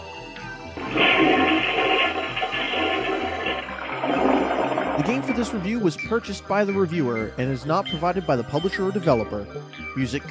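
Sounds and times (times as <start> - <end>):
toilet flushing: 0.8 - 5.9
speech: 5.1 - 10.2.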